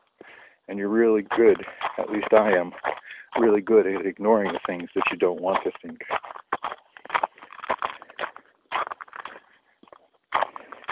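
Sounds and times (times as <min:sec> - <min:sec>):
footsteps crunching on icy snow: 0:00.2 - 0:10.8
speech: 0:00.7 - 0:06.2.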